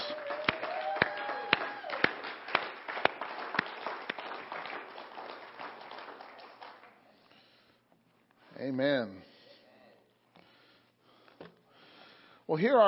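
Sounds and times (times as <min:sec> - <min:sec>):
crowd cheering: 0:00.0 - 0:06.8
loud steady rhythmic clapping: 0:00.0 - 0:07.0
speech: 0:08.6 - 0:09.3, 0:12.5 - 0:12.8.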